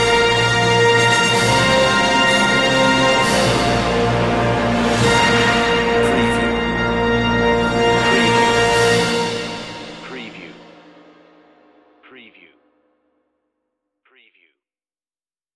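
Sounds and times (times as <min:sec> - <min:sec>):
regal music ending: 0:00.0 - 0:12.0.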